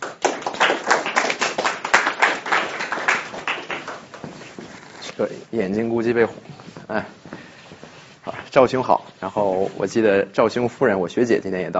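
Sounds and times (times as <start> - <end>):
audience clapping: 0.0 - 4.9
speech: 5.2 - 7.2, 8.5 - 11.7.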